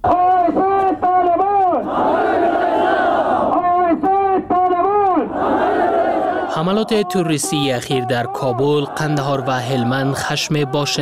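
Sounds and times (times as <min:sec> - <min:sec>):
crowd of protesters chanting slogans outside the Pakistani embassy in Kabul: 0:00.0 - 0:10.9
speech: 0:06.6 - 0:10.9.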